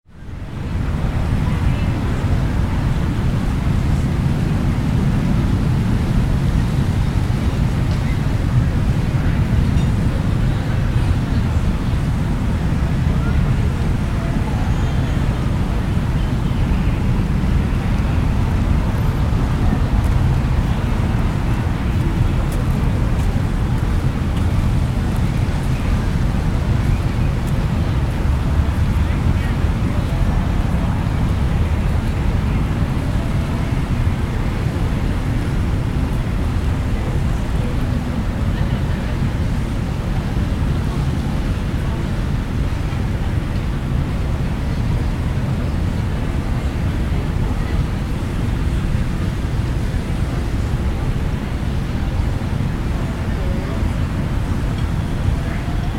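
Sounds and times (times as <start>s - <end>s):
city street: 0.0s - 55.9s.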